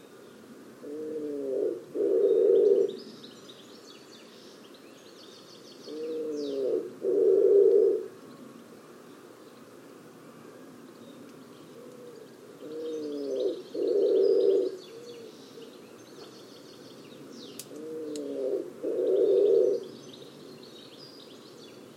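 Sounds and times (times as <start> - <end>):
bird cooing in a low register: 0.8 - 3.0, 5.8 - 8.2, 11.7 - 15.8, 17.6 - 20.0.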